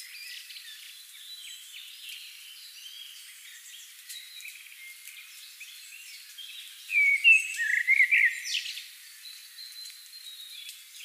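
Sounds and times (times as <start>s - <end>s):
common blackbird fluted whistles: 6.9s - 8.6s.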